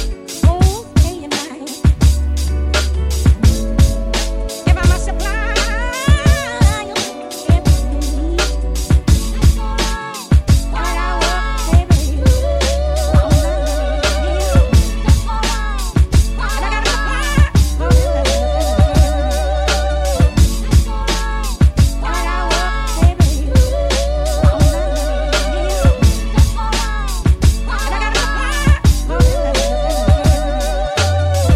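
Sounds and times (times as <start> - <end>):
drum kit: 0.0 - 31.5.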